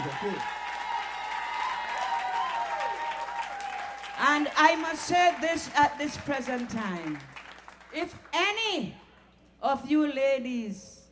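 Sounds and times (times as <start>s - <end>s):
audience applause for band: 0.0s - 7.9s
speech: 0.2s - 0.6s, 4.2s - 7.3s, 7.9s - 9.0s, 9.6s - 11.0s.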